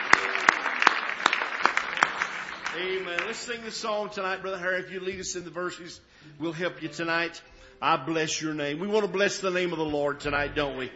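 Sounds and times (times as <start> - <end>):
congregation clapping hands in praise: 0.0 - 3.6
crowd applause: 0.0 - 4.1
speech: 2.8 - 10.9.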